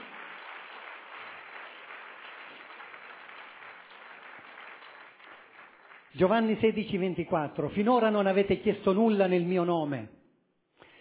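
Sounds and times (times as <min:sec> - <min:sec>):
audience applause: 0:00.0 - 0:06.2
speech: 0:06.1 - 0:10.2.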